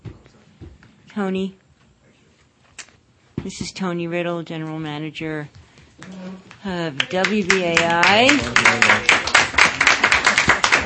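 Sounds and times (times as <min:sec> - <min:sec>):
speech: 0:01.2 - 0:01.6, 0:03.4 - 0:09.2
audience applause: 0:06.9 - 0:10.8.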